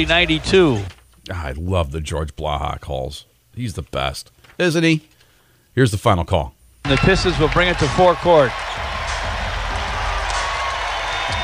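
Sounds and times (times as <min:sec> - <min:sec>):
speech: 0:00.0 - 0:05.1, 0:05.8 - 0:08.7
crowd applauding and cheering at a Pistons–76ers basketball game: 0:06.9 - 0:11.4.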